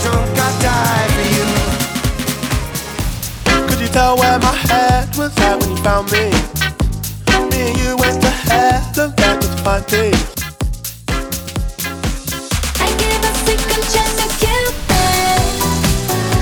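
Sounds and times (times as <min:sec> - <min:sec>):
radio sweeper beat mix: 0:00.0 - 0:16.3.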